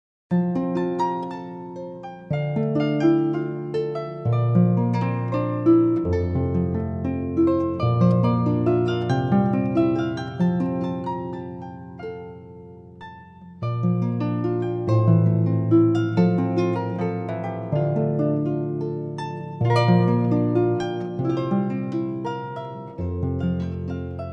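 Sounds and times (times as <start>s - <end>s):
harp prelude: 0.3s - 24.3s.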